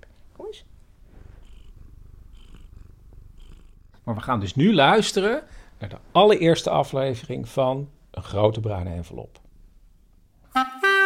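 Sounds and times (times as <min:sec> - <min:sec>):
cat purring: 0:00.1 - 0:06.0
speech: 0:04.1 - 0:09.4.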